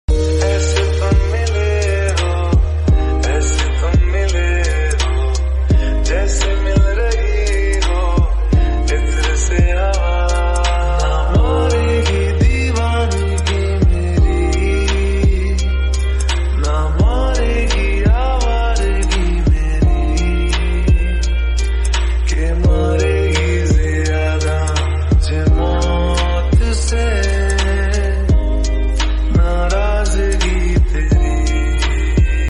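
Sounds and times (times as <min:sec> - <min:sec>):
remix ringtone background music: 0:00.1 - 0:32.4.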